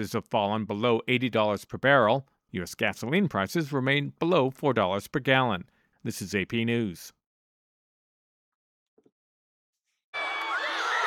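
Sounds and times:
speech: 0.0 - 7.2
crowds reacting in Buenos Aires: 10.2 - 11.0.

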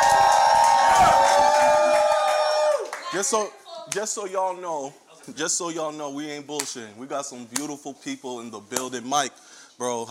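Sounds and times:
live crowd cheering and hollering: 0.0 - 3.2
speech: 3.1 - 10.0.

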